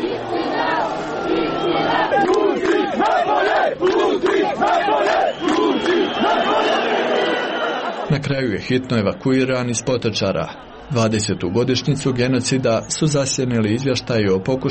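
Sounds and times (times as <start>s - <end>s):
continuous roar of many people: 0.0s - 7.4s
large crowd shouting in unison in rhythmic bursts of chanting: 0.0s - 8.1s, 10.6s - 10.9s
laughter: 0.0s - 12.4s
speech: 8.3s - 14.6s.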